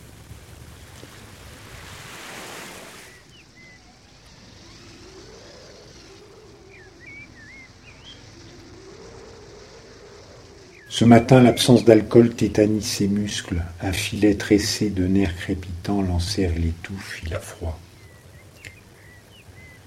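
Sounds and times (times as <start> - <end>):
ocean waves on a beach: 0.0 - 19.8
speech: 11.0 - 17.9.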